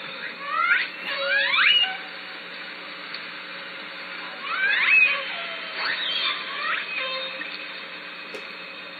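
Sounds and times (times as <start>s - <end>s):
Southern Resident killer whale calls underwater at Lime Kiln: 0.4s - 2.1s, 4.4s - 7.4s.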